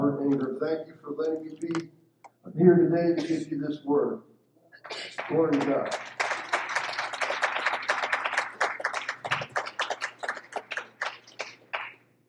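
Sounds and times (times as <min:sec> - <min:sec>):
speech: 0:00.3 - 0:06.2
audience applause: 0:04.9 - 0:12.0.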